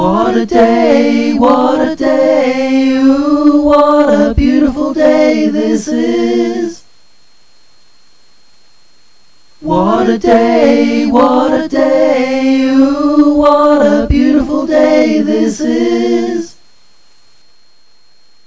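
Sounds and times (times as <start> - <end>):
combined vocal passes singing: 0.0 - 6.8, 9.6 - 16.6.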